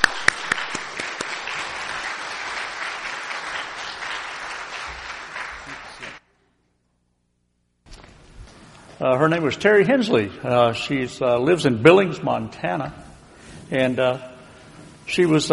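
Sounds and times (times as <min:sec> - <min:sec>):
audience applause welcoming a guest: 0:00.0 - 0:06.2
speech: 0:09.0 - 0:13.1, 0:13.7 - 0:14.3, 0:15.1 - 0:15.5.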